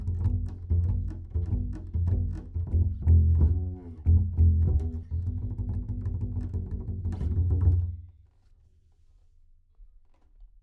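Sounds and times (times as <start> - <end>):
bass: 0.0 - 8.2.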